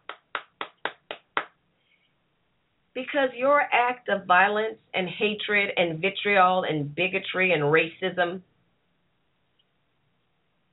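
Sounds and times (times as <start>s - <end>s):
applause: 0.0s - 1.5s
speech: 3.0s - 8.5s.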